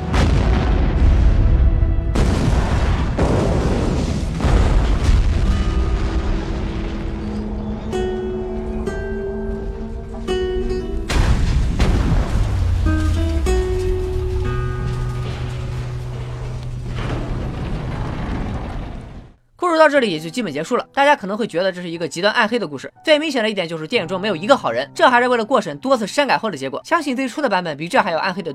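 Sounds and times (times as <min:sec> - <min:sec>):
truck explosion: 0:00.0 - 0:19.4
speech: 0:19.9 - 0:28.5.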